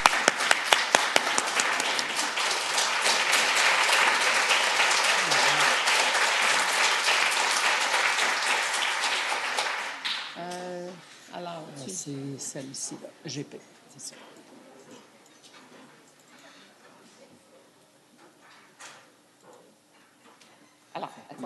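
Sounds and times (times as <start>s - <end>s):
standing ovation applause from an audience: 0.0s - 10.4s
speech: 12.5s - 14.4s.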